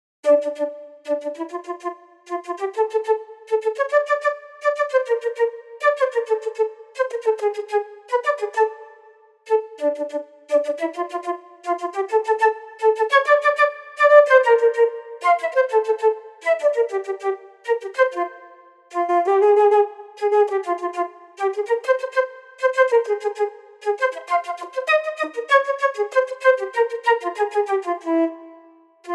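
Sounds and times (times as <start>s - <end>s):
flute: 0.2s - 29.1s.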